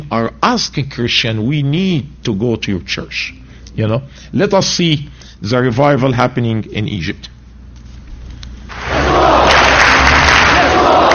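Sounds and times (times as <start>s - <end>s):
speech: 0.1s - 7.4s
crowd clapping: 8.7s - 11.1s.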